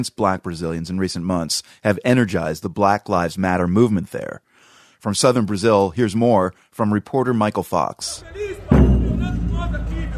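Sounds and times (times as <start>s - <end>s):
speech: 0.0s - 10.1s
lone bass drum beat: 8.7s - 10.1s.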